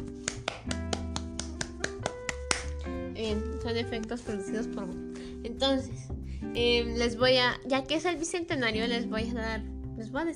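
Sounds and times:
single pair of hands clapping: 0.0 - 2.9
speech: 3.2 - 10.3.

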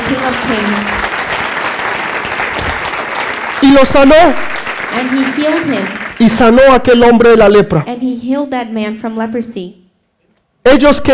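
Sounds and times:
audience applause: 0.0 - 6.7
speech: 0.1 - 1.0, 3.7 - 9.8, 10.6 - 11.1.

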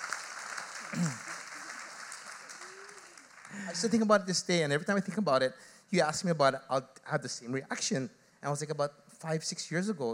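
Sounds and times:
audience applause: 0.0 - 4.2
speech: 3.7 - 10.1.

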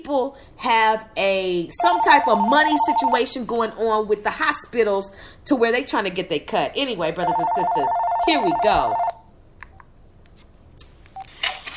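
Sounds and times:
speech: 0.0 - 9.1
telephone dialing tones for a call-in: 1.8 - 3.3, 7.3 - 9.1.

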